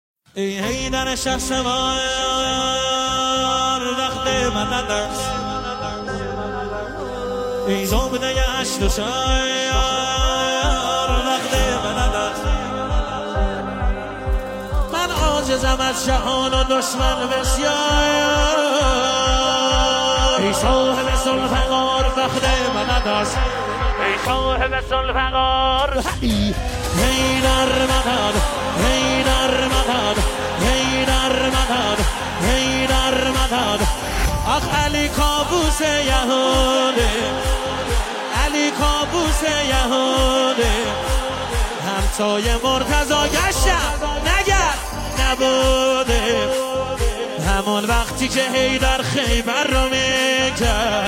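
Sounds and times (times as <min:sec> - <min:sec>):
music video song: 0:00.3 - 0:51.0.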